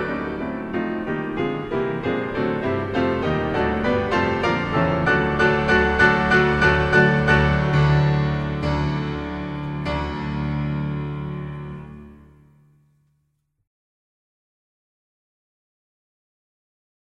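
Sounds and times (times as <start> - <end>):
two pianos playing a roll: 0.0 - 13.1.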